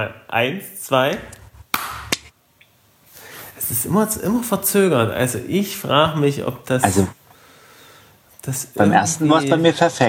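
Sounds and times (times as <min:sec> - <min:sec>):
speech: 0:00.0 - 0:01.4, 0:03.6 - 0:07.2, 0:08.4 - 0:10.0
hiss: 0:00.0 - 0:10.0
sharp hand claps to sync recordings: 0:01.7 - 0:02.3.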